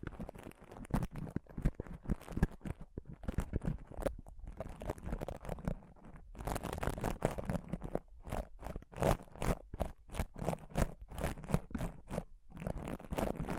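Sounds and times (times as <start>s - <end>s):
close-up microphone scratching and touching: 0.0s - 13.5s.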